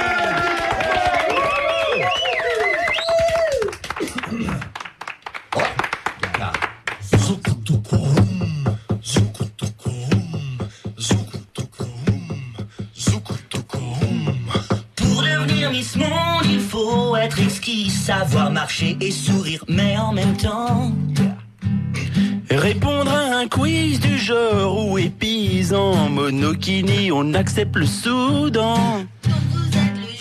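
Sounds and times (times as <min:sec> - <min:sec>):
studio audience applause for a band: 0:00.0 - 0:07.1
music: 0:07.0 - 0:30.1
speech: 0:17.5 - 0:21.1, 0:22.5 - 0:29.1.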